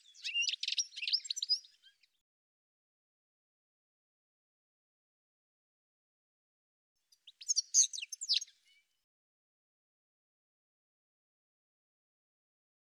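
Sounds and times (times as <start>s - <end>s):
bird calls of high rapid chirps and twittering notes: 0.0s - 2.1s, 7.2s - 8.8s.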